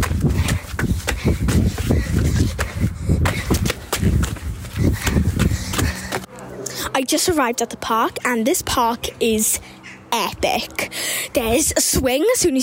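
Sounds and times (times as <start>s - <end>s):
child's running footsteps on a lane: 0.0s - 6.3s
speech: 7.0s - 12.6s.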